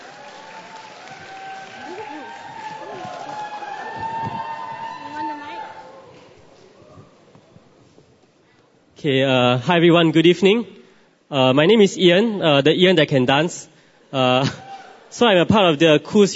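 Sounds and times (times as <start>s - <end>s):
audience clapping to welcome a dancer at an evening ministry gathering: 0.0s - 6.8s
people cheering: 0.0s - 7.0s, 14.4s - 15.1s
speech: 9.0s - 16.3s.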